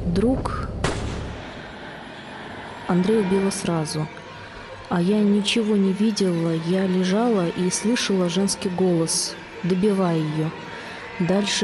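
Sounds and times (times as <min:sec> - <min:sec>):
speech: 0:00.2 - 0:00.7, 0:02.9 - 0:04.2, 0:04.9 - 0:11.6
gunshot: 0:00.8 - 0:01.5.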